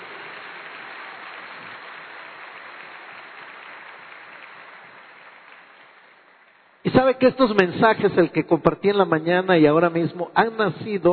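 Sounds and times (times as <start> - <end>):
audience applause at a religious gathering: 0.0 - 7.1
speech: 6.8 - 11.1.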